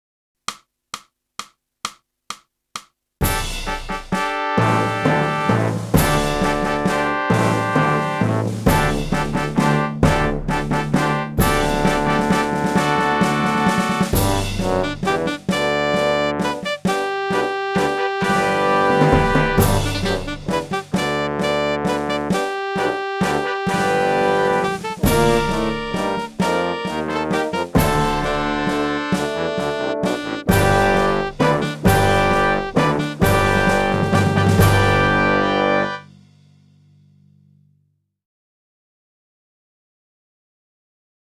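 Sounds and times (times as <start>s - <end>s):
saxophone: 3.7s - 36.1s.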